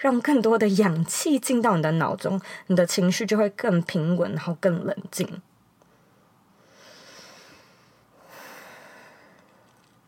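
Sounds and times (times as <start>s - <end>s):
speech: 0.0s - 5.5s
deep breath: 5.9s - 9.9s.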